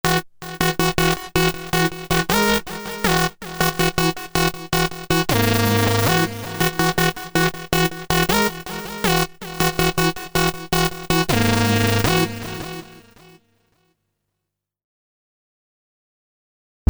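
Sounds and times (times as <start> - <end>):
Korg Z1 synthesizer: 0.1 - 13.4.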